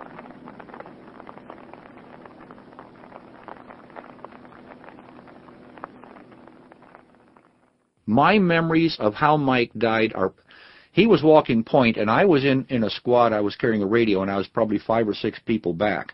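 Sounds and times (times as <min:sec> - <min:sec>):
rain falling at night: 0:00.0 - 0:08.0
speech: 0:08.1 - 0:16.1.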